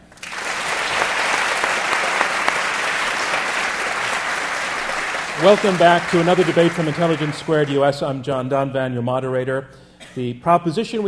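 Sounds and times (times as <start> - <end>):
audience round of applause: 0.0 - 8.0
speech: 5.4 - 11.0.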